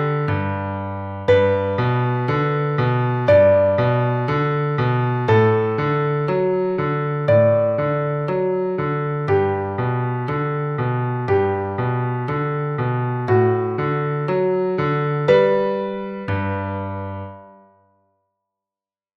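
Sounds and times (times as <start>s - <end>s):
solo piano: 0.0s - 17.9s.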